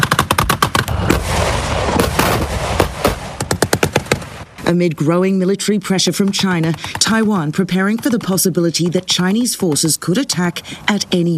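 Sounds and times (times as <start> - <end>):
automatic gunfire during military drill: 0.0 - 4.4
speech: 4.7 - 11.3.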